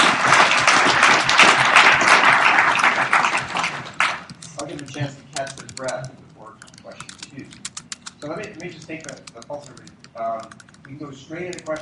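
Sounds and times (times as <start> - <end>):
audience applause: 0.0 - 4.3
speech: 10.4 - 11.8.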